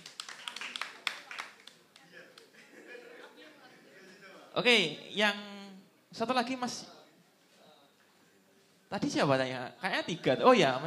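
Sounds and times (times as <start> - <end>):
audience applause: 0.0 - 1.8
laughter: 2.2 - 3.8
speech: 4.6 - 5.5, 6.1 - 7.0, 8.9 - 10.8.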